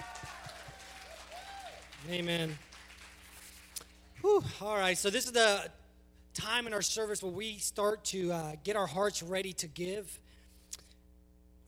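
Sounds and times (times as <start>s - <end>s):
audience applause: 0.0s - 3.8s
speech: 2.0s - 2.7s, 4.2s - 5.8s, 6.4s - 10.2s.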